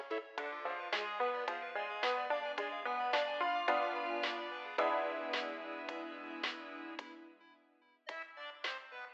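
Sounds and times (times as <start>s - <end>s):
main theme music loop radio version: 0.0s - 7.3s.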